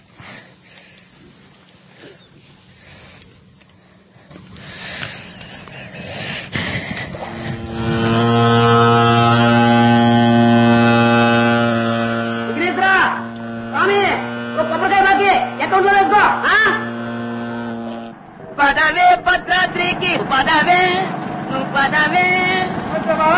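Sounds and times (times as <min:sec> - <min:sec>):
low noise: 0:00.0 - 0:23.3
deep horn of a launch boat being boarded: 0:07.2 - 0:18.4.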